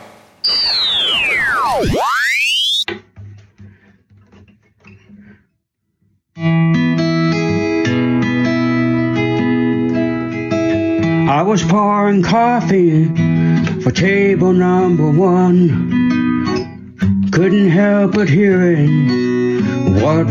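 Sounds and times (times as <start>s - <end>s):
radio being tuned with whistling and static: 0.4s - 2.8s
music coming through the radio: 2.9s - 20.2s
speech: 11.5s - 16.0s, 17.4s - 20.2s.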